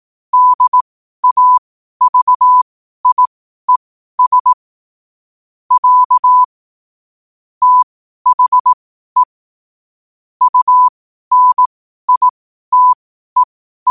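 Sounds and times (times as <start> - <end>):
morse code at 5 wpm: 0.4 - 4.6, 5.7 - 6.5, 7.6 - 9.3, 10.4 - 13.9.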